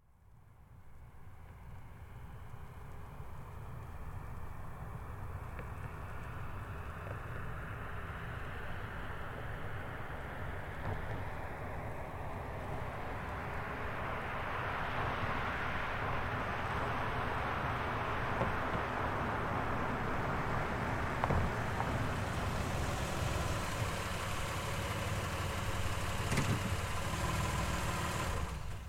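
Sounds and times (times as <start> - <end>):
Highlander car driving up slowly and stopping: 1.2 - 28.8.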